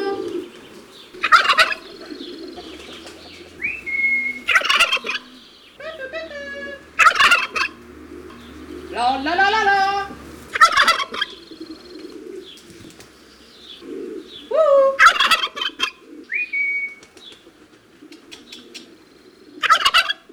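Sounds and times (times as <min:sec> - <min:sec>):
turkey gobbling: 0:00.0 - 0:12.6, 0:13.8 - 0:16.8, 0:17.4 - 0:20.3
farmyard rustling: 0:00.0 - 0:20.3
whistled note: 0:03.6 - 0:05.4.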